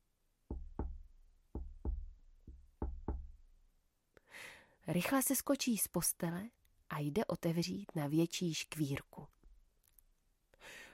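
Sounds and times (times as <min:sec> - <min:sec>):
tapping on a small window: 0:00.5 - 0:03.4
speech: 0:04.4 - 0:09.4.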